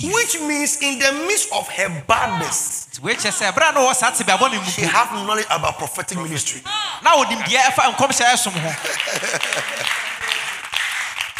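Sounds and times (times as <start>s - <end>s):
speech: 0.0s - 10.1s
laughter: 3.1s - 5.2s, 7.1s - 10.8s
audience clapping: 7.5s - 11.3s.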